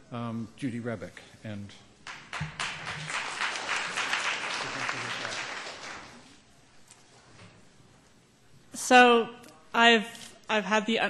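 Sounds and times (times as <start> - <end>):
speech: 0.1 - 3.1, 8.9 - 11.0
audience applause at a university class event: 2.1 - 6.4.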